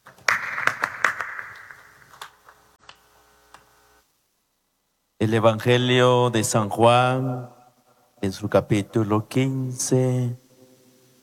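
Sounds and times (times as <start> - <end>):
loud applause: 0.1 - 2.1
speech: 5.2 - 7.6, 8.2 - 10.4.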